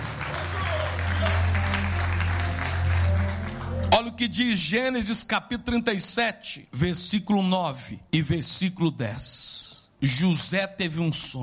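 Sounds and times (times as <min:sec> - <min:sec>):
audience applauding: 0:00.0 - 0:04.2
speech: 0:04.2 - 0:11.4.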